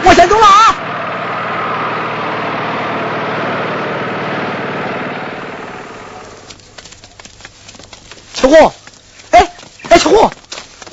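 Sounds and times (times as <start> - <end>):
vehicle engine running as it drives off: 0.0 - 8.2.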